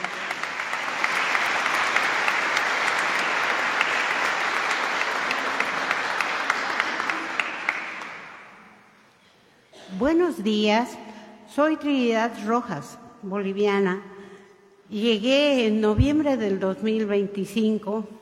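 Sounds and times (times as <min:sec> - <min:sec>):
audience applause: 0:00.0 - 0:08.7
speech: 0:10.0 - 0:11.0, 0:11.6 - 0:14.1, 0:14.9 - 0:18.2.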